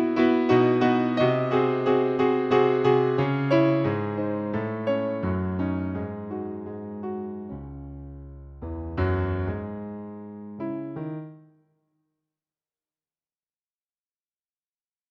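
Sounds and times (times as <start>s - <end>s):
piano: 0.0s - 11.7s.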